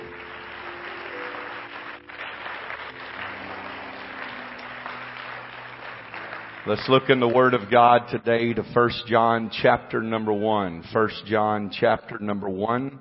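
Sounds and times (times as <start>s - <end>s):
audience clapping for guests: 0.0s - 8.4s
speech: 6.6s - 12.9s.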